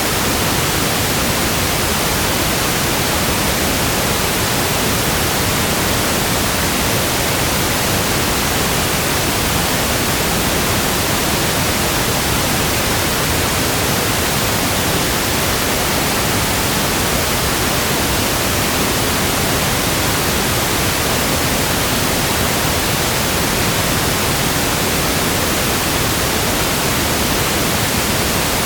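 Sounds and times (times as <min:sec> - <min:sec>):
pink noise: 0:00.0 - 0:28.6.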